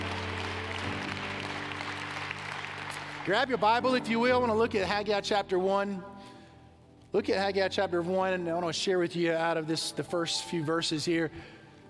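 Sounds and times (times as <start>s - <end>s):
audience clapping hands in praise: 0.0s - 4.1s
speech: 3.2s - 6.1s, 7.1s - 11.6s.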